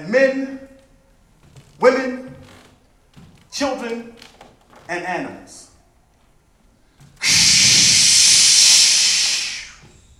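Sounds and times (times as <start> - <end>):
speech: 0.0 - 0.7, 3.6 - 4.2, 4.9 - 5.6
high pressure water cannon spraying through the side of a house: 7.2 - 9.8.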